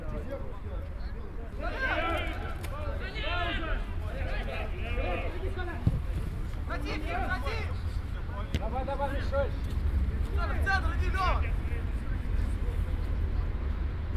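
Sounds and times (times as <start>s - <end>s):
football fans in Sergiyev Posad: 0.0s - 14.1s.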